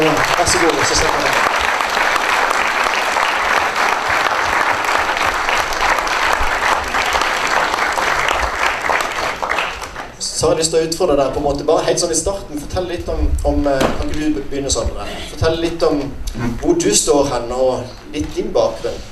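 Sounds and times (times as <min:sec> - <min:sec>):
audience applause: 0:00.0 - 0:10.2
speech: 0:10.4 - 0:19.1.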